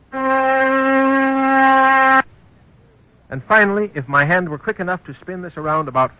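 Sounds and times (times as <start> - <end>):
oscillator tone at 256 cycles per second: 0.1 - 2.2
speech: 3.3 - 6.1.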